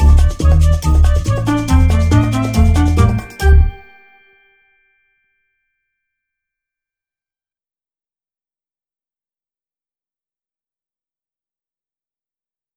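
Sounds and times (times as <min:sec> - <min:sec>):
stereo music: 0:00.0 - 0:05.4.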